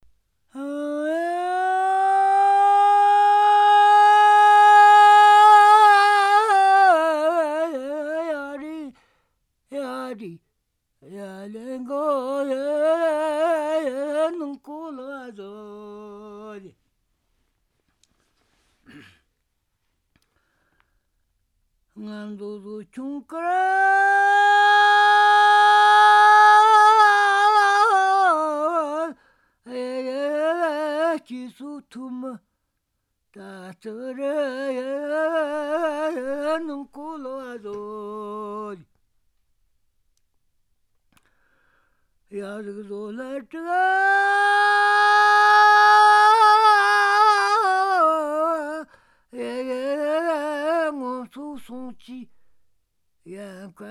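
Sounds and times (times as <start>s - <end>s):
folk song: 0.0s - 19.2s, 21.9s - 39.1s, 41.0s - 52.6s.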